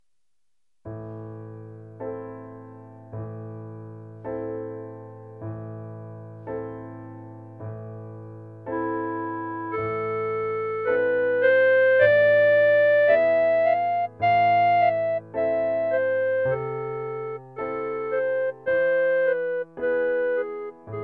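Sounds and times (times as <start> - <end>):
clarinet: 8.7 - 21.0.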